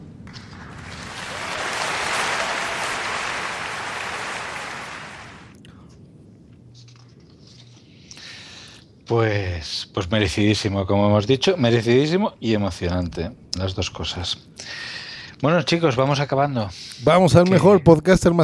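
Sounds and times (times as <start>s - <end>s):
applause: 0.0s - 5.6s
speech: 9.1s - 14.8s, 15.4s - 18.4s.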